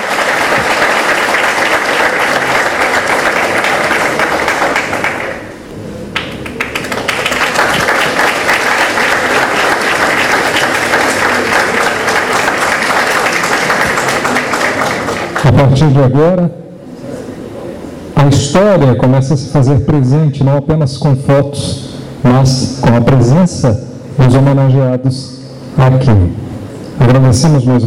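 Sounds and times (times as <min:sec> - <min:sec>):
audience applause: 0:00.0 - 0:05.6, 0:06.2 - 0:15.7
speech: 0:15.6 - 0:16.6, 0:18.3 - 0:26.4, 0:27.0 - 0:27.8.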